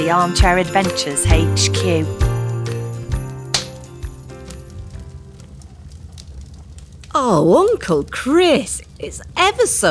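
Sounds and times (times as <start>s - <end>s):
speech: 0.0s - 2.3s, 7.2s - 9.9s
bell jingling: 0.0s - 4.7s.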